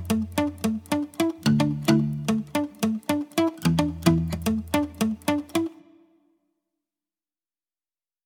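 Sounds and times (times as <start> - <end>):
acoustic music: 0.0 - 6.2.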